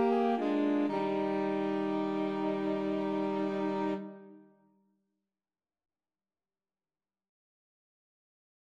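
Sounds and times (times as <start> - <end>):
saxophone quartet playing a christmas carol: 0.0 - 4.4.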